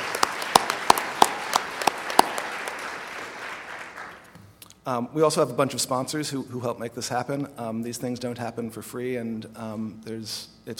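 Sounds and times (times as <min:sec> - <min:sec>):
applause: 0:00.0 - 0:04.3
speech: 0:04.8 - 0:10.7.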